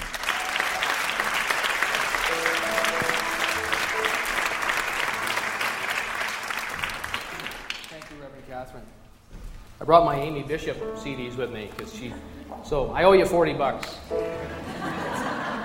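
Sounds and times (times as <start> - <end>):
congregation applause greeting a guest speaker at a New Thought service: 0.0 - 8.4
speech: 9.9 - 14.5
laughter: 14.2 - 15.6.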